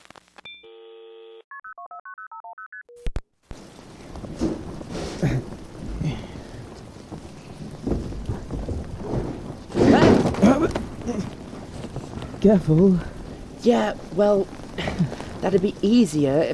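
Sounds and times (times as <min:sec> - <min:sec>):
steady rain: 0:03.5 - 0:16.5
distant thunder rumbling: 0:03.6 - 0:16.5
speech: 0:12.4 - 0:16.5.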